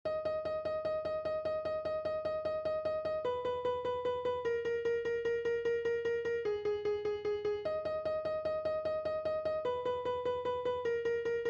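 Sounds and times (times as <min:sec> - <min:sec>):
guitar: 0:00.1 - 0:11.4.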